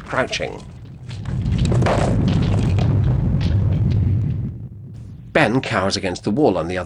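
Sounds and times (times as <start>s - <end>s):
breaking masonry cracks: 0.0s - 4.6s
stone block and columns collapsing: 0.0s - 6.8s
speech: 0.1s - 2.3s, 5.3s - 6.8s.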